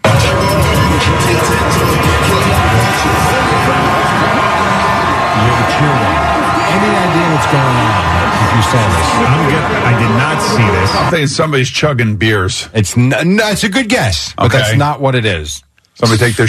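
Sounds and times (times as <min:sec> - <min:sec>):
crowd noise at the Chiefs parade in Kansas City: 0:00.0 - 0:11.6
speech: 0:08.5 - 0:16.4.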